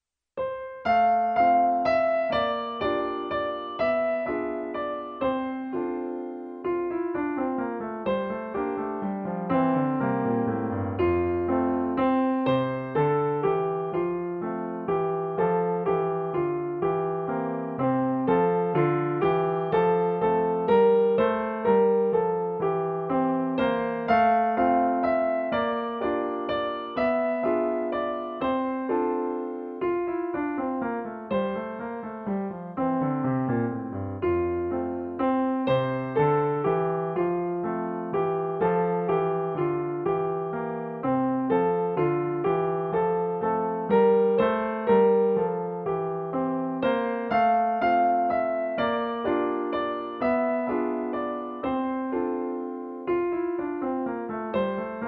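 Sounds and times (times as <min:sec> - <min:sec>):
piano: 0:00.0 - 0:55.0.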